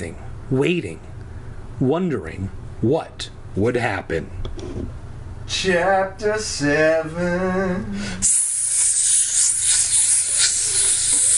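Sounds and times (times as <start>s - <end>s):
speech: 0.0s - 1.1s, 1.8s - 8.4s
mist hissing from a bottle: 8.2s - 11.3s.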